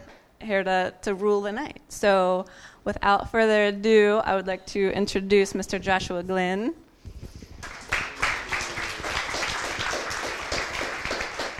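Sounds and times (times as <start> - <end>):
speech: 0.4 - 6.8
crowd applauding: 7.6 - 11.5.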